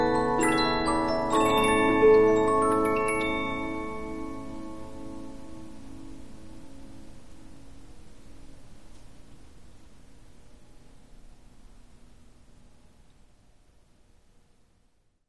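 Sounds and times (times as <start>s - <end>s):
Polyphon 15-inch disc music box playing: 0.0s - 5.1s.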